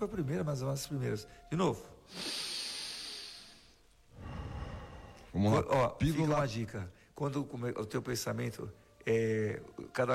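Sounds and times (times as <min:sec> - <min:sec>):
speech: 0:00.0 - 0:02.4, 0:05.3 - 0:10.1
people breathing during a breathing exercise: 0:02.1 - 0:05.4.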